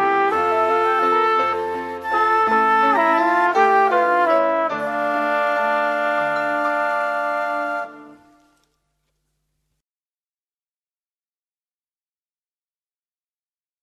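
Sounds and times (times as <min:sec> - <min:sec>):
music: 0:00.0 - 0:09.1.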